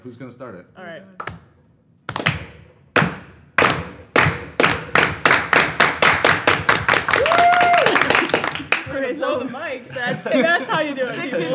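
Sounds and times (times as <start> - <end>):
speech: 0.0 - 1.5, 9.0 - 11.5
group attempting a slow clap: 1.2 - 9.1
laughter: 7.7 - 11.5.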